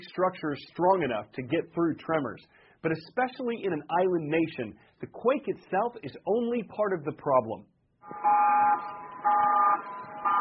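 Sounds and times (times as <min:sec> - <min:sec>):
speech: 0:00.1 - 0:09.9
tsunami warning siren: 0:08.0 - 0:10.3.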